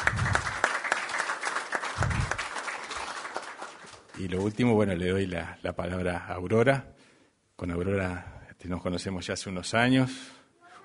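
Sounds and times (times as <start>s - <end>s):
audience applause: 0.0s - 4.2s
speech: 4.2s - 7.0s, 7.6s - 10.4s.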